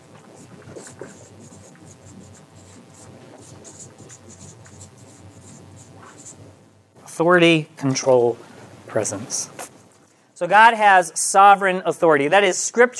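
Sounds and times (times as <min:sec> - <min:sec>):
scratchy writing strokes on a board: 0:00.4 - 0:06.4
speech: 0:07.2 - 0:09.6, 0:10.4 - 0:12.9.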